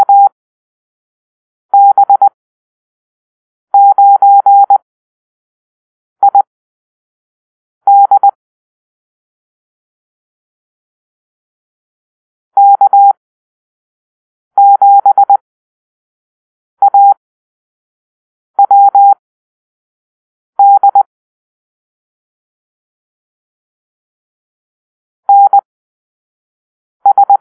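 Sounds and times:
morse code beeps in a call-sign drill: 0:00.0 - 0:00.3, 0:01.8 - 0:02.3, 0:03.8 - 0:04.8, 0:07.9 - 0:08.4, 0:12.6 - 0:13.2, 0:14.6 - 0:15.4, 0:16.8 - 0:17.2, 0:18.6 - 0:19.2, 0:20.6 - 0:21.1, 0:25.3 - 0:25.6, 0:27.1 - 0:27.4.

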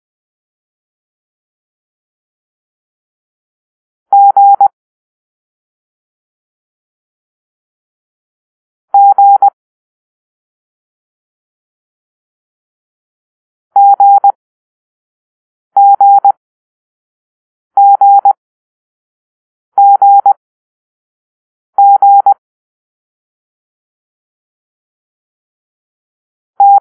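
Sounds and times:
morse code letter G tones: 0:04.1 - 0:04.6, 0:08.9 - 0:09.5, 0:13.8 - 0:14.3, 0:15.8 - 0:16.4, 0:17.8 - 0:18.3, 0:19.8 - 0:20.3, 0:21.8 - 0:22.4, 0:26.6 - 0:26.7.

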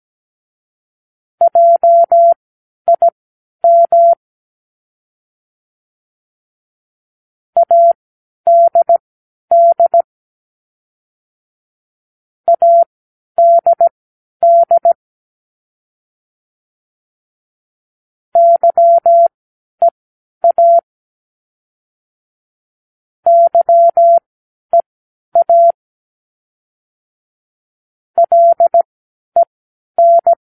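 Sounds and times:
morse code practice words: 0:01.4 - 0:03.1, 0:03.7 - 0:04.2, 0:07.6 - 0:10.1, 0:12.5 - 0:15.0, 0:18.4 - 0:19.3, 0:20.4 - 0:20.8, 0:23.3 - 0:24.8, 0:25.4 - 0:25.8, 0:28.2 - 0:28.8, 0:29.4 - 0:30.4.

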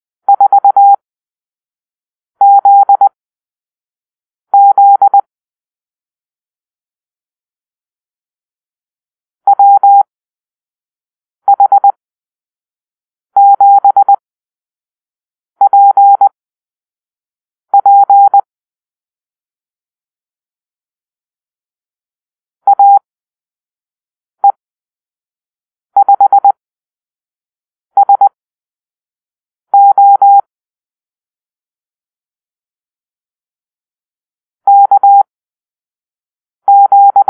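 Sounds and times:
morse code call-sign beeps: 0:00.3 - 0:01.0, 0:02.4 - 0:03.1, 0:04.6 - 0:05.2, 0:09.5 - 0:10.0, 0:11.5 - 0:11.9, 0:13.4 - 0:14.2, 0:15.6 - 0:16.3, 0:17.8 - 0:18.5, 0:22.7 - 0:23.0, 0:26.0 - 0:26.5, 0:28.0 - 0:28.3, 0:29.8 - 0:30.4, 0:34.7 - 0:35.3, 0:36.7 - 0:37.2.

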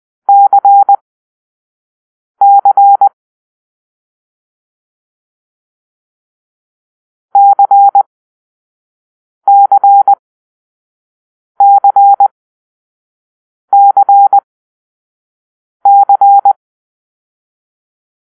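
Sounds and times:
Morse code tones for the letter C: 0:00.3 - 0:01.0, 0:07.4 - 0:08.0, 0:09.5 - 0:10.2, 0:11.6 - 0:12.3, 0:13.7 - 0:14.4, 0:15.9 - 0:16.6.

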